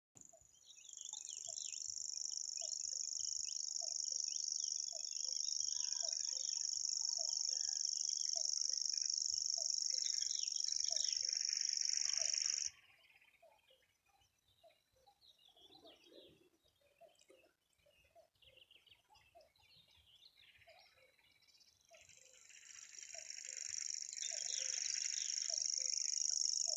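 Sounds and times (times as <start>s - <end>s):
other songbirds chirping: 0.2s - 13.8s, 14.7s - 26.7s
common grasshopper warbler reeling: 8.4s - 12.7s, 22.4s - 26.7s.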